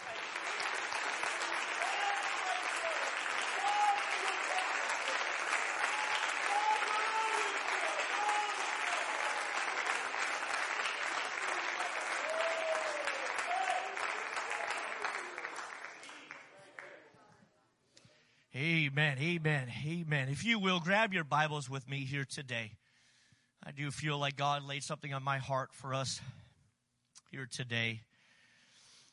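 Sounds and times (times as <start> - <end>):
hand clap of praise: 0.0 - 16.9
speech: 19.1 - 22.8, 23.8 - 26.3, 27.4 - 28.1.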